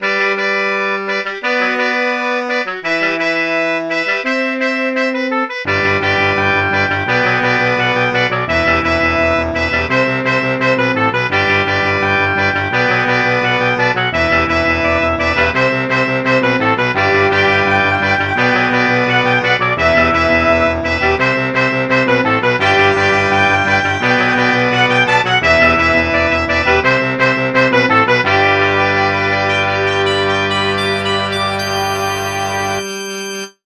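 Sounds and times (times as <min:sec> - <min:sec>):
saxophone: 0:00.0 - 0:33.6.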